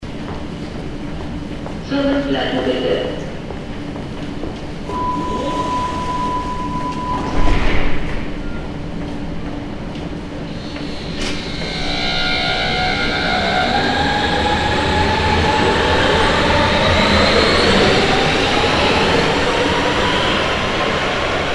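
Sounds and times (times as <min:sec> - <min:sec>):
subway train departing: 0:00.0 - 0:21.5.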